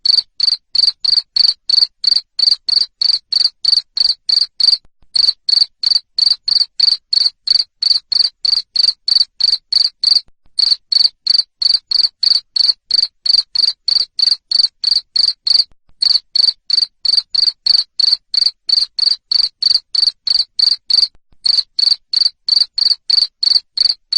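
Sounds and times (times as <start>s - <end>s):
cricket chirping: 0.0s - 24.1s.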